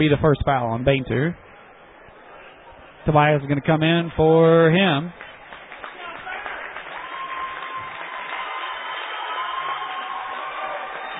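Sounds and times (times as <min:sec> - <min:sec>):
speech: 0:00.0 - 0:01.4, 0:03.0 - 0:05.3
basketball crowd applauding: 0:05.1 - 0:11.1.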